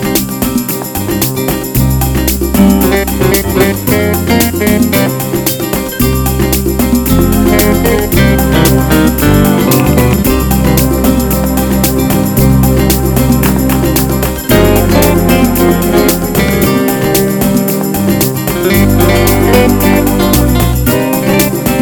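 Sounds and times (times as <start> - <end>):
fast flamenco music: 0.0 - 21.8.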